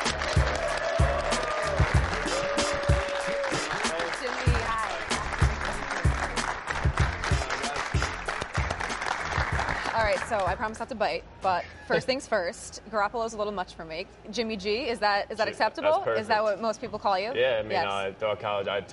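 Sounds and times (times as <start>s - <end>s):
high school football team and audience clapping: 0.0s - 10.8s
speech: 10.3s - 18.9s.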